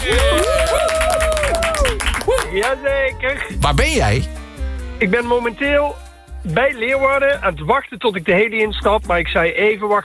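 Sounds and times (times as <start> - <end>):
crowd applause: 0.0 - 2.8
speech: 2.6 - 4.4, 5.0 - 10.0.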